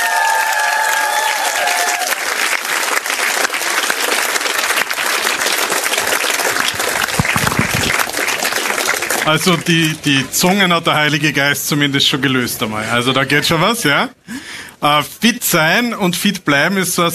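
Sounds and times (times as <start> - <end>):
audience applause: 0.0 - 10.1
speech: 9.3 - 14.2, 14.8 - 17.1.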